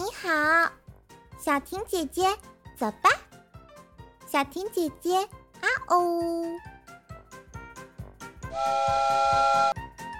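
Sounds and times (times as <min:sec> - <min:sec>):
speech: 0:01.4 - 0:03.2, 0:04.3 - 0:06.7, 0:08.6 - 0:09.7
toy train multi-tone whistle: 0:08.5 - 0:09.8.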